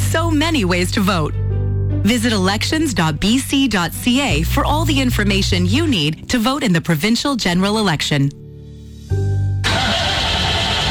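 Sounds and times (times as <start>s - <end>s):
speech: 0.3s - 1.4s, 2.0s - 8.4s
stalled car engine cranking: 9.6s - 10.8s.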